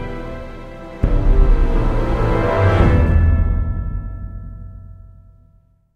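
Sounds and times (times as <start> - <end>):
tense music sting: 1.0 - 5.7.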